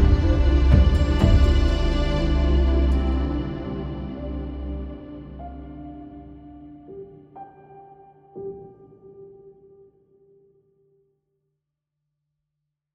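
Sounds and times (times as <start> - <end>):
intro music: 0.0 - 7.0.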